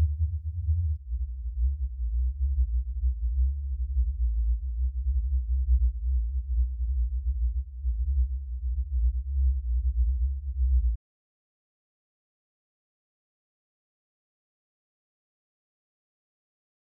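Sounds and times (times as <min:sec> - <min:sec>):
subwoofer blend: 0:00.0 - 0:11.0.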